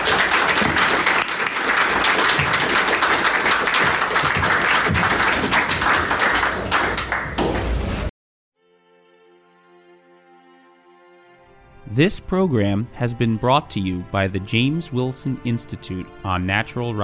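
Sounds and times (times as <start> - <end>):
crowd applause: 0.0 - 8.1
speech: 12.0 - 17.0.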